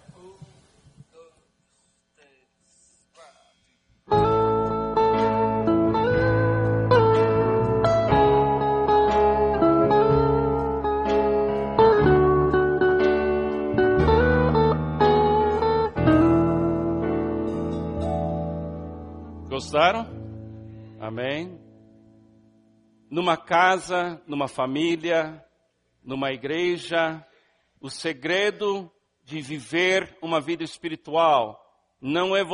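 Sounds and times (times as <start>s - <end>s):
song played back: 4.1s - 20.9s
speech: 19.7s - 20.1s, 23.1s - 25.4s, 26.0s - 32.5s.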